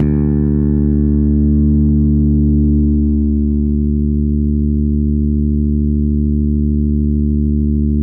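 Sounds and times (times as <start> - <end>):
bass: 0.0 - 8.0.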